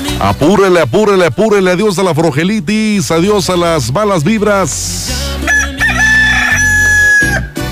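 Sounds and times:
speech: 0.2s - 5.7s
rooster crowing: 5.4s - 7.6s.

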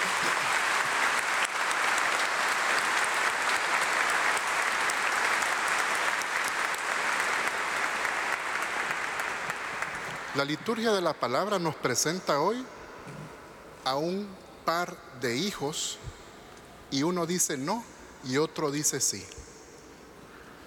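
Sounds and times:
audience applause: 0.0s - 10.4s
speech: 10.4s - 12.8s, 13.8s - 16.2s, 16.9s - 19.5s.

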